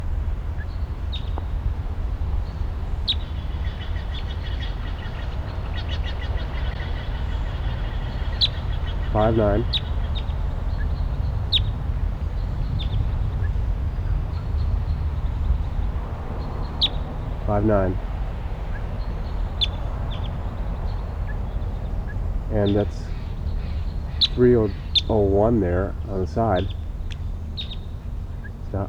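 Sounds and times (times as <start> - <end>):
steady low rumble: 0.0 - 28.8
sharp high bird call notes: 2.5 - 28.8
brief buzzy lower-pitched bursts: 9.1 - 9.9, 17.1 - 27.0, 28.5 - 28.8
speech: 9.2 - 9.8, 17.5 - 18.1, 22.6 - 23.1, 24.4 - 26.8.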